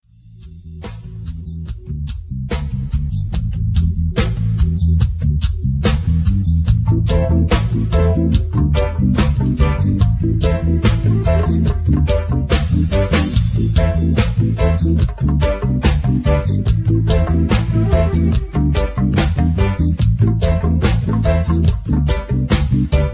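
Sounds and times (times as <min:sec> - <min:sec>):
Latin reggae music: 0:00.1 - 0:23.1.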